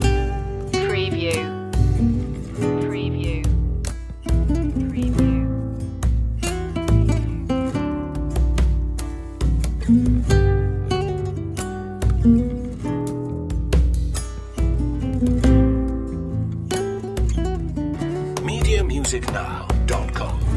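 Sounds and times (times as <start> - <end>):
latino music loop: 0.0 - 20.5.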